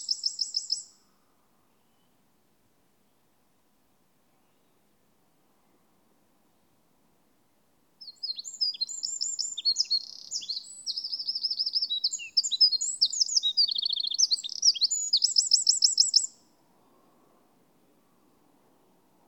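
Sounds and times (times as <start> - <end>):
Eurasian wren calling: 0.0 - 1.0, 8.0 - 16.4.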